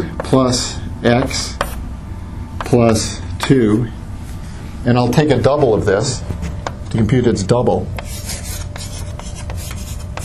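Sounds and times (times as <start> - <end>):
speech: 0.3 - 1.6, 2.7 - 4.0, 4.8 - 8.0
writing on a board: 1.2 - 1.8, 8.0 - 10.2.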